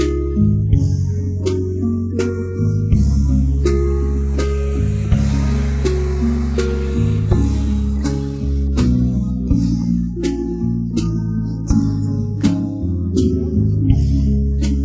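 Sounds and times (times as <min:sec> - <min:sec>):
music: 0:00.0 - 0:14.8.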